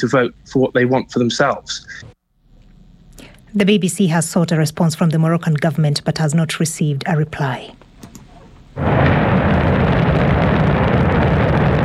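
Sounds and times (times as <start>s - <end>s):
speech: 0.0s - 2.1s, 3.2s - 8.2s, 8.8s - 9.3s
China's Shenzhou 23 rocket lifting off from Inner Mongolia: 8.8s - 11.8s.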